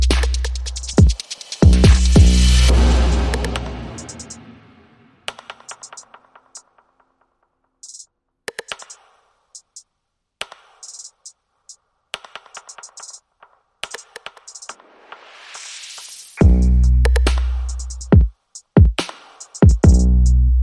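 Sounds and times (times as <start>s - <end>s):
bass: 0.0s - 1.0s, 1.7s - 3.8s, 16.4s - 18.2s, 19.8s - 20.6s
drums: 0.0s - 9.8s, 10.4s - 11.4s, 12.2s - 20.3s.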